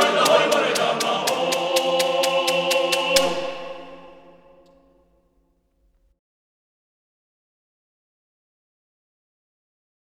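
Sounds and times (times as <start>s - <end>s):
male choir singing: 0.0s - 4.8s.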